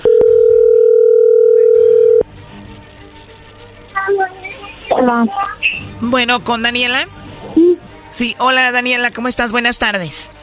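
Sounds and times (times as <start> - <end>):
telephone dial tone: 0.0 - 2.2
speech: 5.0 - 7.2, 8.2 - 10.4.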